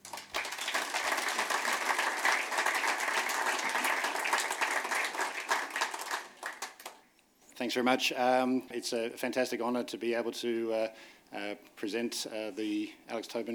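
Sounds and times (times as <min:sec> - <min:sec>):
audience applause at a medal presentation in Newcastle: 0:00.0 - 0:07.0
speech: 0:07.6 - 0:13.5.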